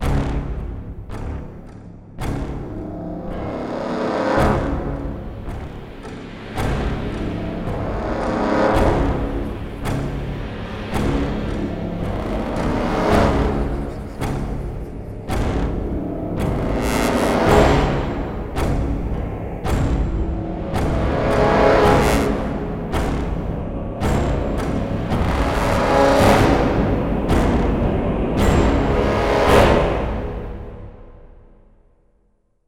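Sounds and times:
music beat: 0.0s - 31.4s.

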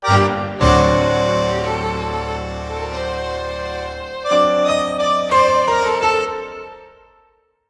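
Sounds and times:
tango music: 0.0s - 7.1s.

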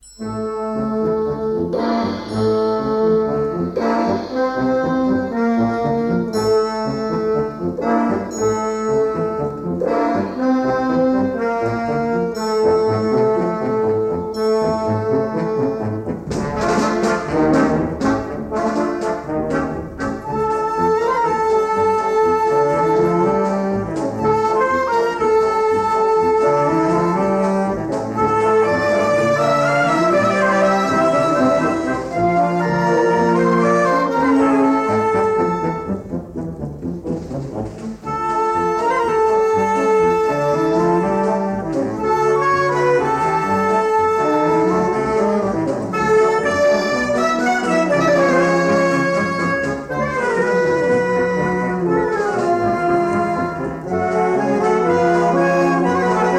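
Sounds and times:
paso doble music: 0.0s - 56.3s.

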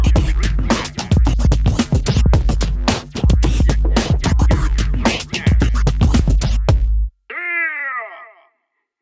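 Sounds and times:
hip hop music: 0.0s - 6.9s.

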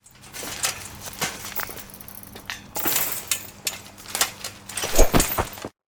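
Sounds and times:
person vaulting a prison fence: 2.1s - 5.7s.

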